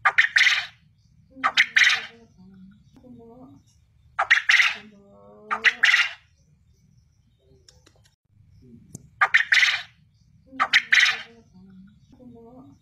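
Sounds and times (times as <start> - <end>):
quail calling in rasping triple phrases: 0.0 - 2.3, 4.2 - 6.3, 9.2 - 11.5.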